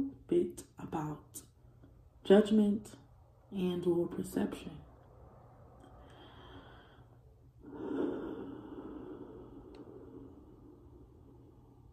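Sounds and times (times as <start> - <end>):
speech: 0.3 - 1.5, 2.2 - 4.8
deep breath inhale: 5.9 - 11.9.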